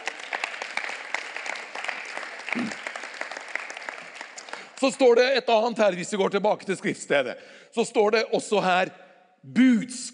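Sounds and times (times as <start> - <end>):
audience applause: 0.0 - 4.9
speech: 2.5 - 2.9, 4.8 - 10.1.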